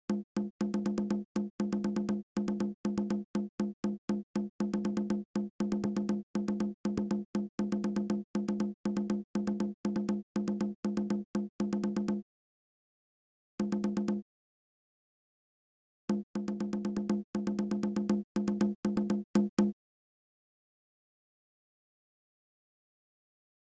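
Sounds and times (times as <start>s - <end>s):
percussion: 0.1s - 12.2s, 13.6s - 14.3s, 16.1s - 19.8s.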